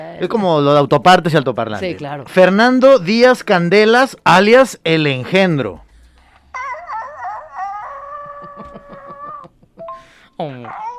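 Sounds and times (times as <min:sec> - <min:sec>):
speech: 0:00.0 - 0:05.8, 0:10.4 - 0:10.9
person imitating a coyote howl: 0:06.6 - 0:09.4
pulsing yelps: 0:06.6 - 0:09.6
laughter: 0:07.8 - 0:09.9.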